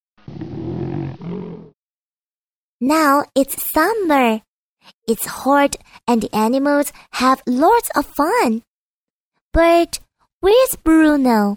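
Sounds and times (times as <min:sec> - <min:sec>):
bear snoring: 0:00.2 - 0:01.8
speech: 0:02.8 - 0:04.5, 0:05.1 - 0:08.7, 0:09.5 - 0:11.5.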